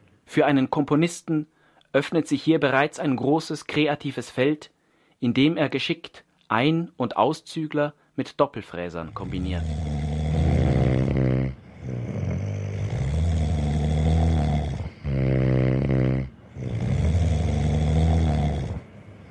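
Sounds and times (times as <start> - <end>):
speech: 0.3 - 9.9
loud snoring: 9.0 - 19.2.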